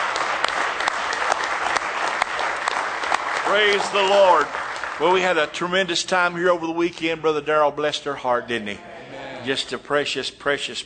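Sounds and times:
audience clapping hands in praise: 0.0 - 6.1
speech: 3.5 - 10.8.

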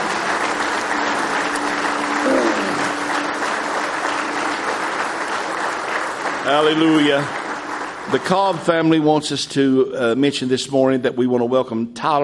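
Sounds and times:
audience clapping hands in praise: 0.0 - 9.7
speech: 6.5 - 7.4, 8.1 - 12.2.

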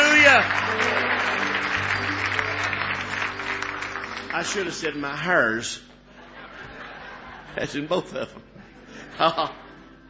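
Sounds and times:
audience hand clapping applause: 0.0 - 5.3
speech: 4.4 - 5.9, 7.6 - 9.6
laughter: 6.1 - 9.7.

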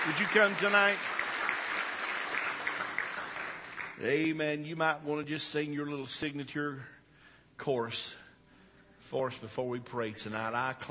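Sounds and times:
speech: 0.0 - 1.4, 4.0 - 7.0, 7.6 - 8.2, 9.0 - 10.8
congregation clapping hands in praise during an evening church service: 0.0 - 4.6.

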